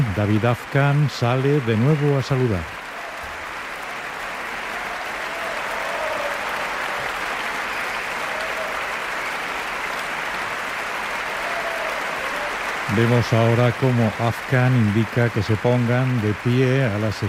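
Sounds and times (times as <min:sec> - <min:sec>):
big ovation of applause from a large audience for an orchestra: 0:00.0 - 0:17.2
speech: 0:00.2 - 0:02.8, 0:13.0 - 0:17.2.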